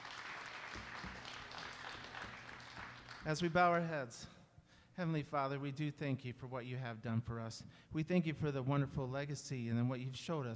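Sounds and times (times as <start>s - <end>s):
audience hand clap of praise: 0.0s - 3.7s
speech: 3.2s - 4.4s, 5.0s - 10.5s.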